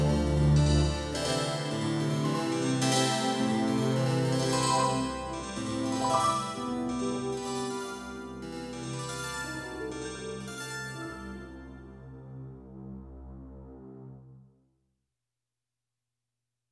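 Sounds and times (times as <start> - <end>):
harpsichord-like chorus: 0.1 - 10.0.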